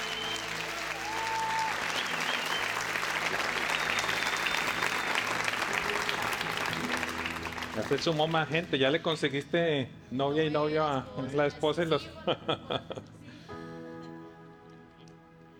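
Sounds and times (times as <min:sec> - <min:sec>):
audience applause: 0:00.0 - 0:08.8
speech: 0:07.8 - 0:13.2
laughter: 0:12.2 - 0:13.4.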